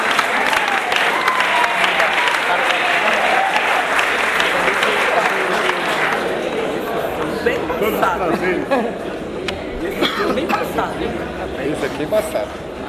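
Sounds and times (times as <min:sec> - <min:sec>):
audience applause: 0:00.0 - 0:07.4
laughter: 0:04.4 - 0:12.0
speech: 0:07.8 - 0:09.2, 0:10.6 - 0:12.7.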